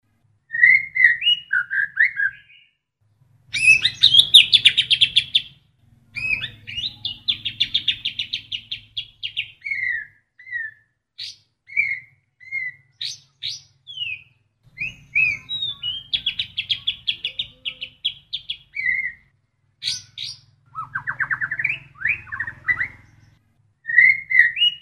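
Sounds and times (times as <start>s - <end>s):
trained White-rumped shama song imitating another songbird: 0.5s - 2.8s, 3.5s - 5.5s, 6.2s - 24.8s.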